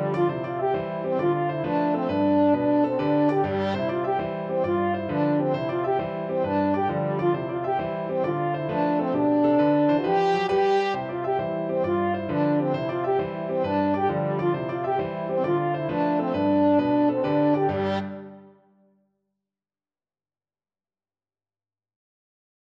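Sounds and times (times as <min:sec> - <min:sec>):
French horn playing a kolo folk dance tune: 0:00.0 - 0:18.7.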